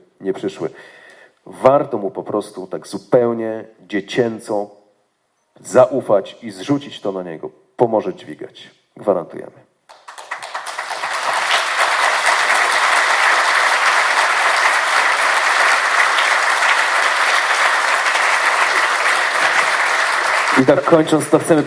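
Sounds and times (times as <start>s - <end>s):
speech: 0.2s - 4.8s, 5.6s - 9.6s, 20.6s - 21.6s
applause: 9.9s - 21.6s.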